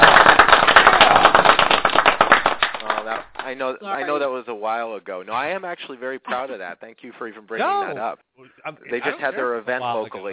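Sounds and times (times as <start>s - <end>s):
audience clapping: 0.0s - 3.7s
speech: 3.5s - 10.3s.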